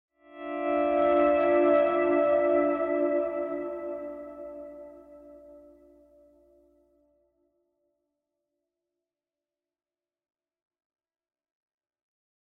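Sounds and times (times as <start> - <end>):
pleasant guitar playing: 0.4 - 5.9.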